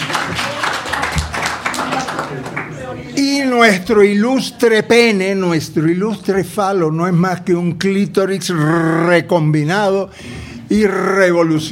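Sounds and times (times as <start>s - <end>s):
audience applause: 0.0s - 3.0s
speech: 3.2s - 11.7s.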